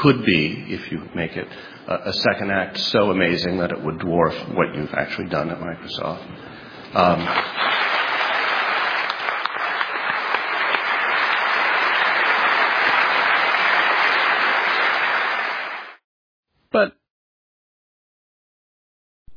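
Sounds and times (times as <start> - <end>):
speech: 0.0 - 7.8, 16.7 - 17.0
crowd applauding: 7.1 - 16.0.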